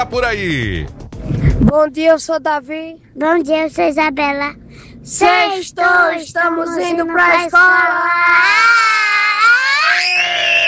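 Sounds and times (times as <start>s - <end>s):
speech: 0.0s - 9.3s
child screaming in a shrill sustained cry: 7.7s - 10.6s.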